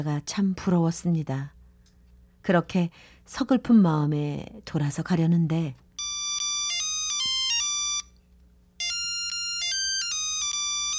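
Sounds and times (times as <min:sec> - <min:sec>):
speech: 0:00.0 - 0:01.6, 0:02.4 - 0:05.8
mobile phone ringing: 0:06.0 - 0:08.2, 0:08.8 - 0:10.9.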